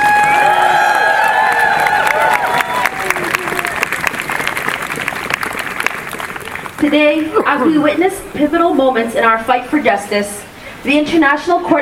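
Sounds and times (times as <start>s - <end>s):
rally crowd applause and cheering: 0.0s - 7.0s
speech: 6.8s - 11.8s.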